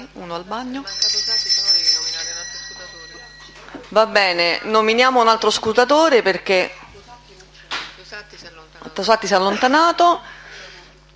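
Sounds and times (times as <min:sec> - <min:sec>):
speech: 0:00.2 - 0:01.3, 0:03.9 - 0:06.8, 0:09.0 - 0:10.3
small bell rung during a council session: 0:00.8 - 0:04.8.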